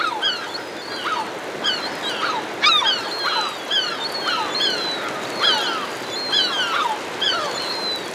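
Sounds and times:
herring gulls mewing and giving harsh barking cries while hovering overhead: 0:00.0 - 0:08.0.

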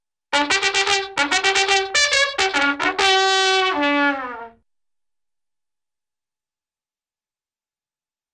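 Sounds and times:
army bugle call played badly, cartoon style: 0:00.4 - 0:04.5.

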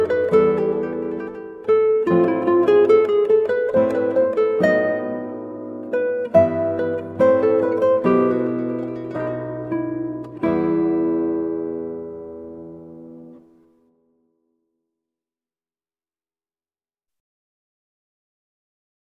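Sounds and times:
guitar playing: 0:00.0 - 0:14.0.

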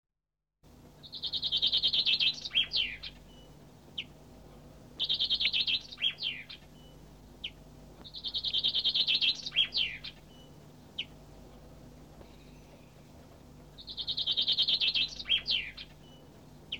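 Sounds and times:
finch singing rapid high trills: 0:01.0 - 0:04.2, 0:05.0 - 0:11.2, 0:13.8 - 0:16.7.

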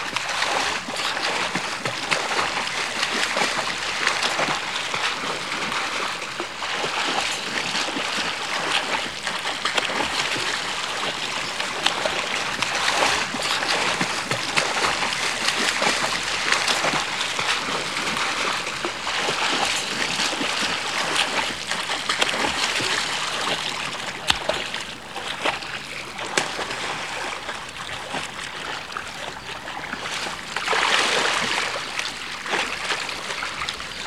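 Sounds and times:
person wading in a stream: 0:00.0 - 0:34.0.

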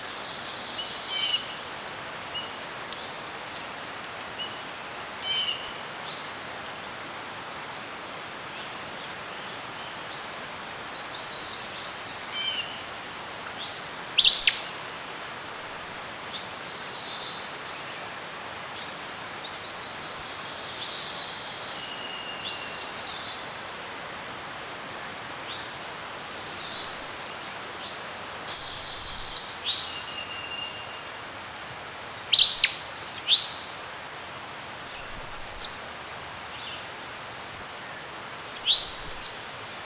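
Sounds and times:
soft hiss: 0:00.0 - 0:39.8
birds chirping and twittering: 0:38.3 - 0:39.8.

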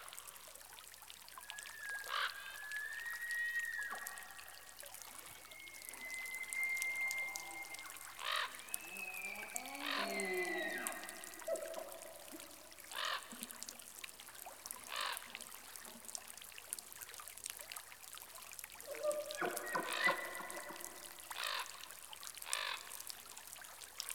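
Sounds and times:
elk in rainforest: 0:01.4 - 0:16.2, 0:18.8 - 0:23.0.

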